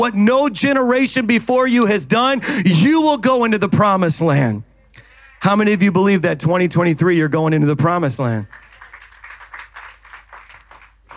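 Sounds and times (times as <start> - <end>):
speech: 0.0 - 4.7, 5.4 - 8.6
slow clapping from audience: 8.4 - 11.1.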